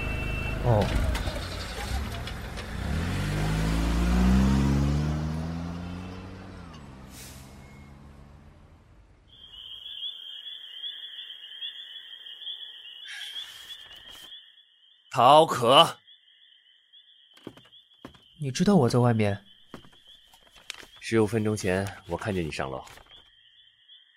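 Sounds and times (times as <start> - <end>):
car engine revving as it pulls away and parks: 0.0 - 9.3
speech: 0.6 - 1.1, 15.2 - 16.0, 18.4 - 19.5, 21.1 - 23.0.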